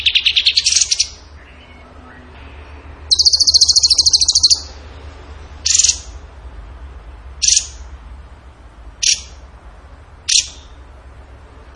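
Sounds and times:
bird singing trill: 0.0s - 4.8s, 5.6s - 6.2s, 7.4s - 7.9s, 9.0s - 9.4s, 10.3s - 10.8s.

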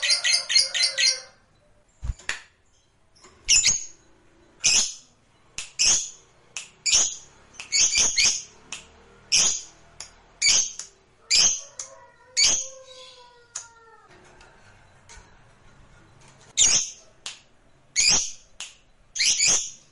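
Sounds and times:
lovebird chirps and squawks: 0.0s - 1.4s, 3.5s - 3.9s, 6.8s - 8.5s, 9.3s - 9.7s, 10.4s - 13.3s, 16.6s - 17.0s, 18.0s - 18.4s, 19.2s - 19.8s.

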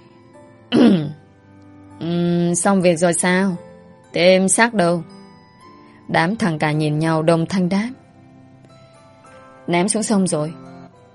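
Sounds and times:
dry cough: 0.7s - 1.2s
throat clearing: 0.7s - 1.2s
speech: 2.5s - 5.1s, 6.1s - 8.0s, 9.7s - 10.7s.

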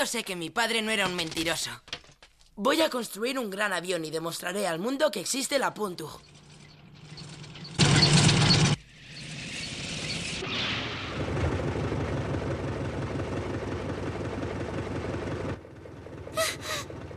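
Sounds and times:
speech: 0.0s - 2.0s, 2.6s - 6.3s
car engine approaching: 6.2s - 17.1s.

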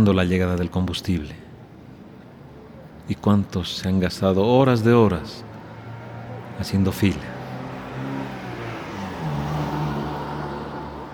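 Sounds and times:
speech: 0.0s - 1.4s, 3.1s - 5.5s, 6.6s - 7.3s
car engine revving and passing by: 5.2s - 11.1s.

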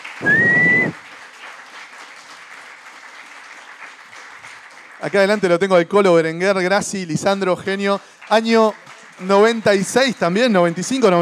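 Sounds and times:
loud audience applause: 0.0s - 6.0s, 6.6s - 11.2s
speech: 5.0s - 11.2s.

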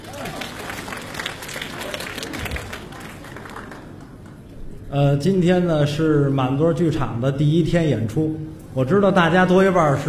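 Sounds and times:
audience applause: 0.0s - 4.5s
speech: 4.9s - 10.0s.

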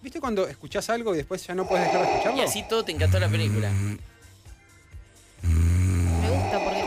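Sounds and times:
speech: 0.1s - 4.1s
voice imitating congested breathing of a sleeping person: 1.6s - 4.0s, 5.4s - 6.8s.

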